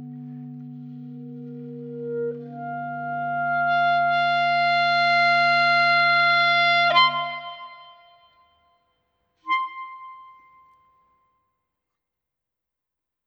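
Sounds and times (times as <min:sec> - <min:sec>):
clarinet trio playing: 0:00.0 - 0:08.1, 0:09.5 - 0:10.6.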